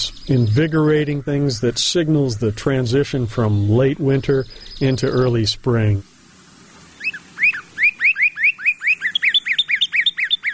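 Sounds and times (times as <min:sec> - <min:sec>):
speech: 0:00.0 - 0:06.1
northern cardinal singing a clear whistled song: 0:07.0 - 0:10.5.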